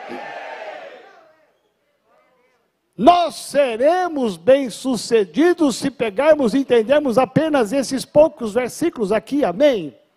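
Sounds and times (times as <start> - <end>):
crowd, audience shouting: 0.0 - 1.3
speech: 0.1 - 0.4, 3.0 - 10.0.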